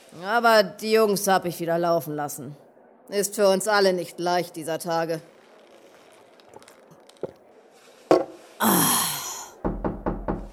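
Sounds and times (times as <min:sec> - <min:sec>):
speech: 0:00.1 - 0:05.4
knocking on a door: 0:08.1 - 0:08.4, 0:09.6 - 0:10.5.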